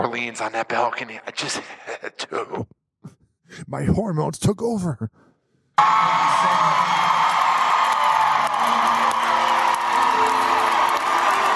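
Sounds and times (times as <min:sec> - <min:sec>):
speech: 0:00.2 - 0:02.8, 0:03.5 - 0:05.2, 0:05.8 - 0:06.6
concert crowd cheering: 0:05.8 - 0:11.5.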